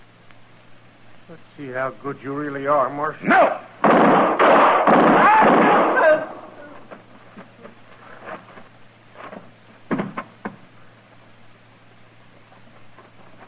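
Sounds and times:
speech: 1.3s - 3.7s
gunshots in a radio western gunfight: 3.3s - 6.6s.

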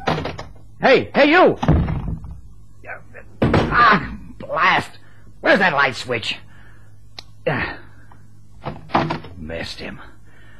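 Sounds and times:
wooden chair tipping and crashing over: 0.0s - 0.6s, 1.6s - 2.4s, 3.4s - 4.1s, 8.6s - 9.4s
speech: 0.8s - 1.9s, 3.7s - 6.4s, 7.4s - 7.8s, 9.0s - 10.1s.

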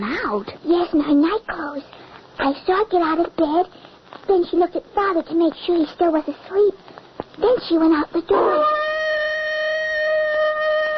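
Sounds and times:
speech: 0.0s - 8.8s
wolf howling: 8.3s - 10.9s.

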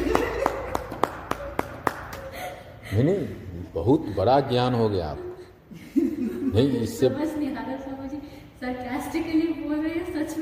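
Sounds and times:
audience clapping: 0.0s - 2.4s
laughter: 0.0s - 6.8s
speech: 2.9s - 8.0s, 8.6s - 10.3s.

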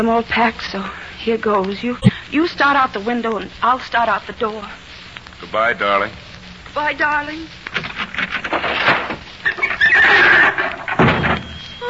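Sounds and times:
speech: 0.0s - 4.8s, 5.4s - 6.2s, 6.8s - 7.9s
folding bed collapsing with rattling clatter and heavy thump: 7.8s - 11.8s
bed springs squealing: 8.8s - 11.8s.

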